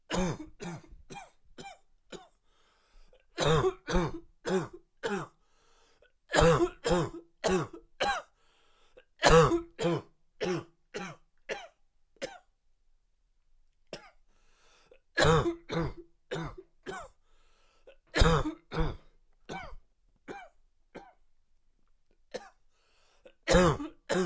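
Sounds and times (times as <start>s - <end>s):
man coughing: 0.1s - 1.7s, 3.4s - 5.3s, 6.3s - 8.3s, 9.2s - 12.4s, 15.2s - 17.1s, 18.2s - 20.5s, 23.5s - 24.2s.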